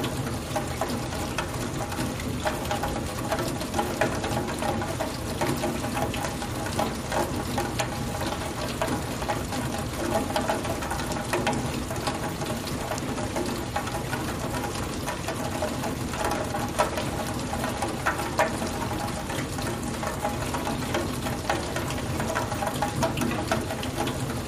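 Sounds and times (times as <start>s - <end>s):
heavy rain with splatty raindrops: 0.0s - 24.4s.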